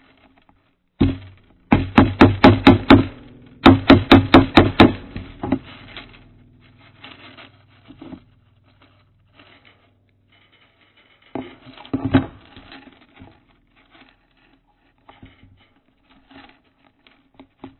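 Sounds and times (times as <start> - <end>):
hammer: 1.0 - 6.2.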